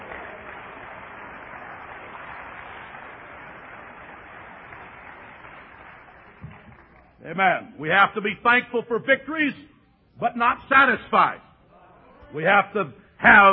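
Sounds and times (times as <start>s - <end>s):
audience clapping hands: 0.0s - 7.2s
speech: 7.2s - 11.5s, 12.3s - 13.5s.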